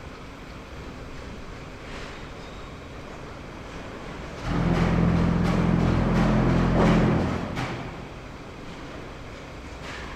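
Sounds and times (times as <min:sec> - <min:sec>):
cement factory noise in Flemalle: 0:03.7 - 0:10.1.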